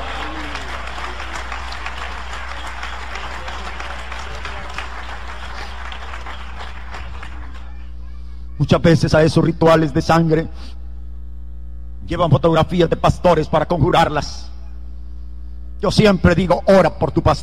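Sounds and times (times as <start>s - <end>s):
audience applause: 0.0s - 8.0s
speech: 8.6s - 10.8s, 12.1s - 14.5s, 15.8s - 17.4s.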